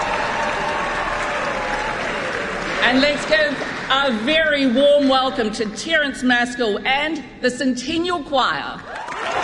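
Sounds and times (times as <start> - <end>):
audience applause after a trumpet solo at a community concert: 0.0 - 4.2, 8.9 - 9.4
speech: 2.8 - 9.0.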